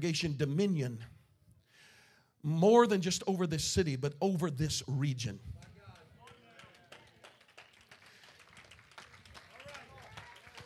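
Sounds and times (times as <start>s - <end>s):
speech: 0.0s - 1.2s, 2.4s - 5.6s
polite scattered clapping: 5.6s - 10.6s.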